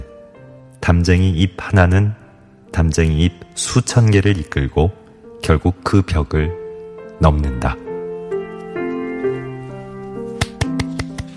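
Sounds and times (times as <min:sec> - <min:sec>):
speech: 0:00.8 - 0:06.6, 0:07.2 - 0:07.8
hand clapping: 0:10.3 - 0:11.3.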